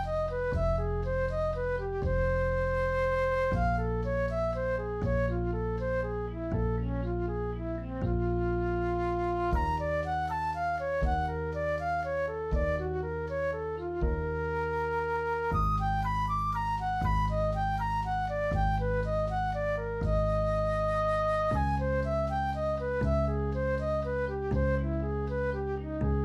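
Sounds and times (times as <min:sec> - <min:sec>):
augmented scale study play-along in minor at 120: 0:00.0 - 0:26.2.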